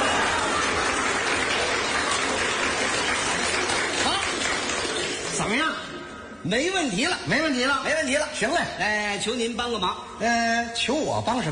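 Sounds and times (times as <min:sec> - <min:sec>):
audience applause: 0:00.0 - 0:05.6
speech: 0:06.5 - 0:11.5.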